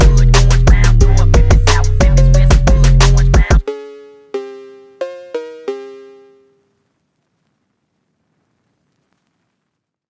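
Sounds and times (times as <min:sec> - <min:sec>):
phonk music: 0:00.0 - 0:06.6.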